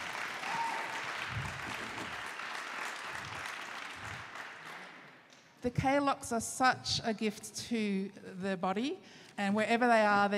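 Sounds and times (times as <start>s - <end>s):
audience applause: 0.0s - 5.1s
speech: 5.6s - 10.3s.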